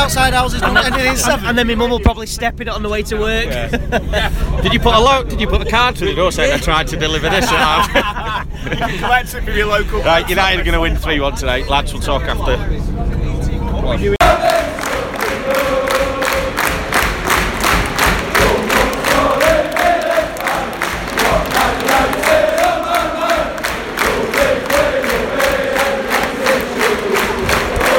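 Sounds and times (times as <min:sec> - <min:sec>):
speech: 0:00.0 - 0:13.2, 0:13.9 - 0:14.7
laughter: 0:00.2 - 0:02.0, 0:03.4 - 0:10.6
clapping or stamping beats: 0:14.2 - 0:27.9
large crowd of football fans chanting leaving stadium: 0:14.2 - 0:27.9.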